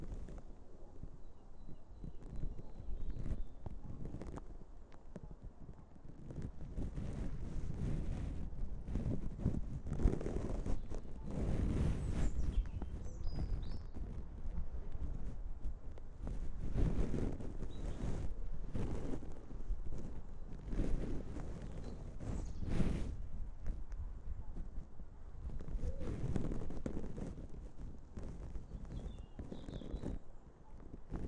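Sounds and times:
Easter Monday birdsong: 0.8 - 4.2, 10.6 - 14.2, 17.7 - 18.2, 21.6 - 22.8, 28.6 - 30.9
bird wing flaps: 6.4 - 31.2.

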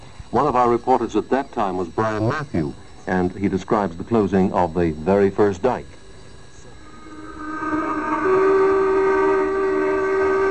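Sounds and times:
speech: 0.3 - 6.0
tugboats hooting and tooting horns: 6.8 - 10.4.

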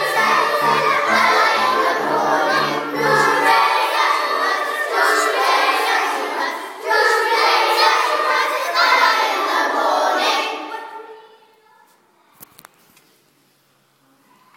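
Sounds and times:
four-part choir singing: 0.0 - 11.0.

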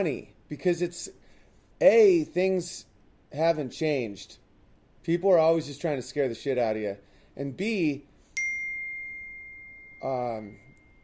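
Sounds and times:
speech: 0.0 - 1.2, 1.8 - 4.4, 5.0 - 8.1, 10.0 - 10.6
text message notification ding on a phone: 8.4 - 11.0.

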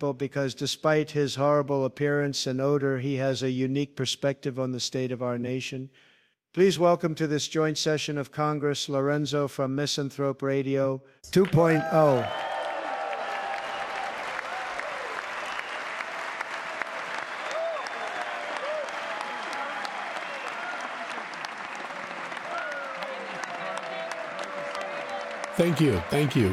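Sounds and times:
speech: 0.0 - 12.6, 25.6 - 26.5
faint voices and cheers: 11.4 - 15.6, 17.4 - 26.5
audience applause: 11.4 - 26.5.

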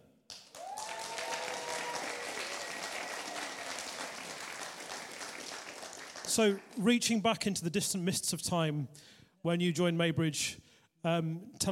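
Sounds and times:
audience applauding to support a person coming up to speak: 0.3 - 6.9
speech: 6.4 - 11.6.

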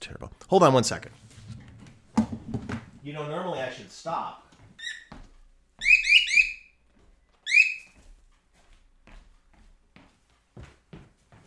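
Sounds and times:
speech: 0.0 - 1.2, 3.1 - 4.4
pet bird shrill whistling calls: 4.8 - 5.1, 5.8 - 6.7, 7.5 - 8.0.

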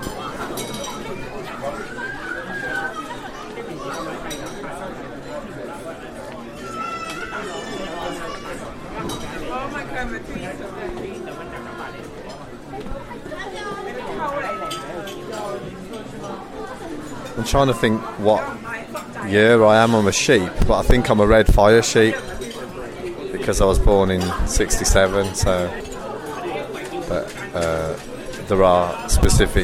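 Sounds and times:
light clinks of dishes and cutlery: 0.0 - 1.7, 2.6 - 5.4, 6.5 - 9.8, 13.4 - 21.0, 21.9 - 23.1, 24.0 - 29.6
dense steady crowd chatter in a busy restaurant: 0.0 - 29.6
speech: 17.5 - 22.4, 23.4 - 25.8, 28.5 - 29.6.

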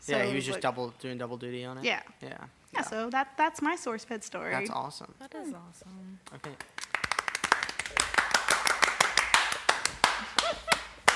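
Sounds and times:
speech: 0.0 - 6.8
clapping: 6.2 - 11.1.

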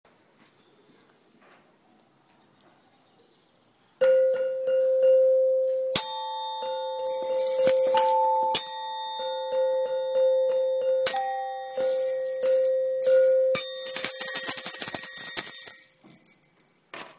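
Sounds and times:
jolly melody: 4.0 - 16.0.

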